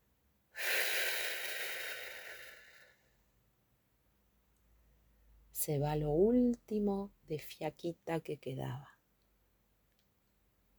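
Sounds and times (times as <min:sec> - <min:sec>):
deep exhale during a guided breathing exercise: 0:00.6 - 0:03.1
speech: 0:05.6 - 0:08.9.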